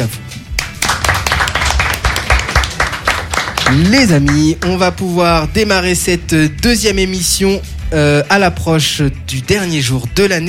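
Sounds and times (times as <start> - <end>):
speech: 0.0 - 0.3, 3.7 - 10.4
applause for the hosts: 0.5 - 4.8.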